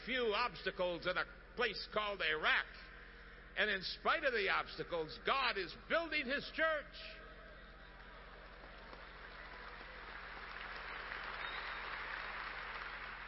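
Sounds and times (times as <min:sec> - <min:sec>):
speech: 0:00.0 - 0:02.9, 0:03.6 - 0:07.2
audience applause: 0:07.9 - 0:13.2.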